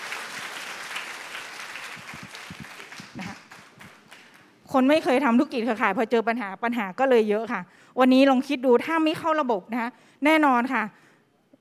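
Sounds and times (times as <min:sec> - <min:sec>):
audience applause: 0:00.0 - 0:04.5
speech: 0:04.7 - 0:11.0.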